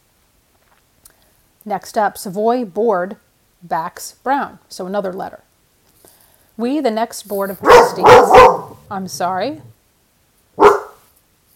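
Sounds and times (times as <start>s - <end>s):
speech: 1.6s - 5.5s, 6.6s - 9.8s
dog barking: 7.6s - 9.4s, 10.6s - 11.0s.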